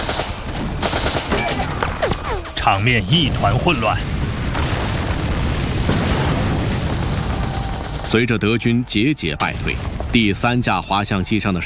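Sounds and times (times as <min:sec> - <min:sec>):
World War II battle gunfire at the Bénouville bridge: 0:00.0 - 0:08.6
speech: 0:02.6 - 0:04.2, 0:08.1 - 0:11.6.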